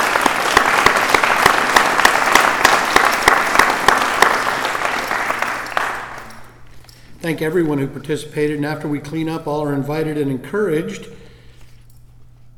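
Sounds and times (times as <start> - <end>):
audience applause: 0.0 - 6.4
speech: 7.2 - 11.2.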